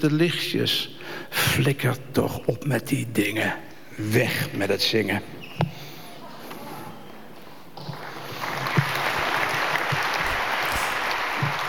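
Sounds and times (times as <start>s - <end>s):
speech: 0.0s - 5.6s
audience applause for a poet: 7.9s - 11.6s.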